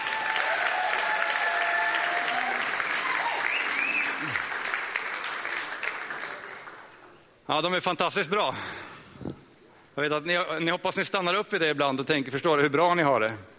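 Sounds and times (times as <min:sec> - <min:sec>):
audience applauding the worship band: 0:00.0 - 0:07.2
speech: 0:07.5 - 0:08.8, 0:10.0 - 0:13.5.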